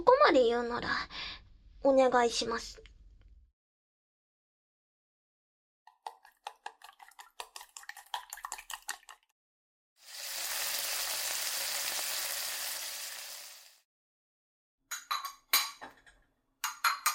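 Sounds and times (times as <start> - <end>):
speech: 0.0 - 1.2, 1.8 - 2.9
tamagoyaki rolled omelette sizzling in a pan: 10.0 - 13.9
utensils clinking and tapping while making tamagoyaki: 14.9 - 17.1.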